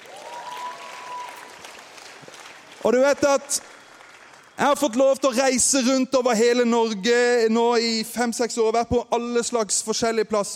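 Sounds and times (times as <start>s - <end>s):
audience applause: 0.0s - 4.9s
speech: 2.8s - 3.8s, 4.6s - 10.5s.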